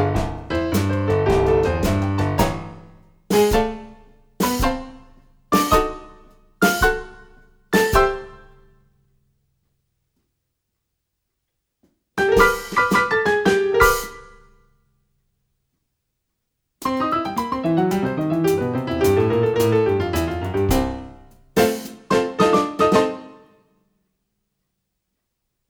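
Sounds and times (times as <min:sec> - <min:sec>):
rhythmic response at two speeds: 0:00.0 - 0:08.4, 0:12.3 - 0:13.2, 0:16.8 - 0:23.2.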